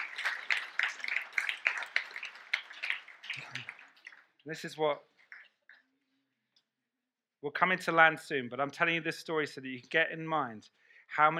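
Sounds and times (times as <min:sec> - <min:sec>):
round of applause: 0:00.0 - 0:04.7
speech: 0:04.4 - 0:05.1, 0:07.4 - 0:11.3.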